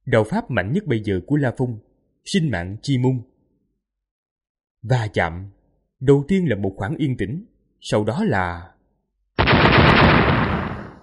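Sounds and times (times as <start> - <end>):
speech: 0.1 - 3.3, 4.8 - 8.7
explosion blast: 9.4 - 11.0.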